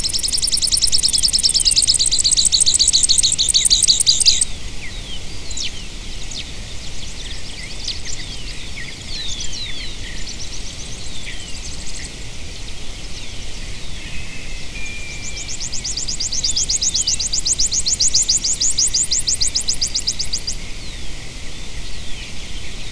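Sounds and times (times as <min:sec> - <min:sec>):
buzzy bird trill: 0:00.0 - 0:04.5, 0:14.1 - 0:20.6
several birds chirping and whistling: 0:00.0 - 0:22.9.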